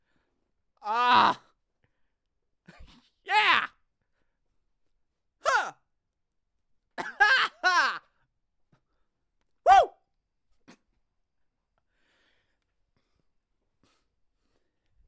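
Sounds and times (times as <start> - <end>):
young man screaming excitedly: 0.8 - 1.4, 3.3 - 3.8, 5.4 - 5.8, 7.2 - 8.0, 9.7 - 10.0.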